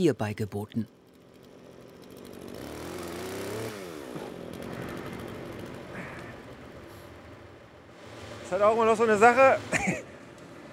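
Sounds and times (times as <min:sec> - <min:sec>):
speech: 0:00.0 - 0:01.0, 0:08.5 - 0:09.9
chainsaw cutting tree tops: 0:01.0 - 0:07.4.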